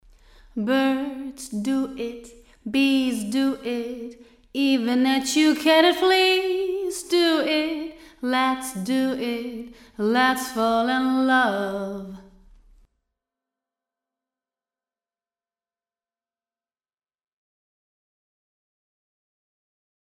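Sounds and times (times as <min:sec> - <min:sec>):
short vocal with plate reverb: 0:00.2 - 0:12.3.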